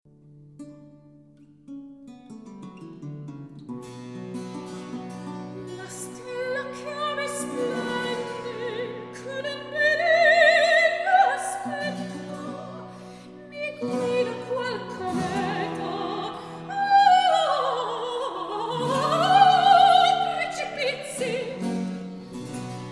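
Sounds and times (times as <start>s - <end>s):
recitative singing: 5.8s - 21.9s.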